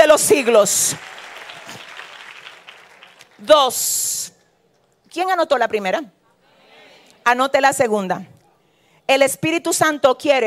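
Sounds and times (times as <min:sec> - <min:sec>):
speech: 0:00.0 - 0:01.2, 0:03.4 - 0:04.2, 0:05.2 - 0:06.2, 0:07.2 - 0:08.3, 0:09.1 - 0:10.4
audience applause: 0:00.7 - 0:03.4.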